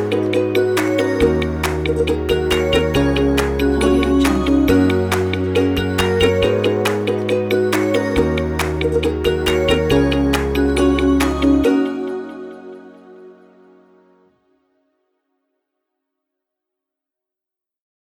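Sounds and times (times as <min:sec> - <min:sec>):
corporate ukulele music: 0:00.0 - 0:13.9.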